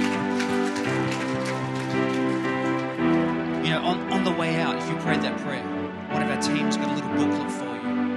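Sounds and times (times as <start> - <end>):
auditorium audience clapping: 0.0 - 4.7
speech: 4.3 - 8.0.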